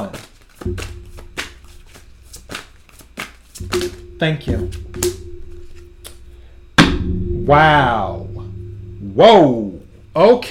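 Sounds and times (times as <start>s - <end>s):
tarot oracle cards being shuffled: 0.0s - 4.0s
speech: 4.2s - 5.1s, 7.5s - 8.1s, 9.2s - 9.6s, 10.2s - 10.4s.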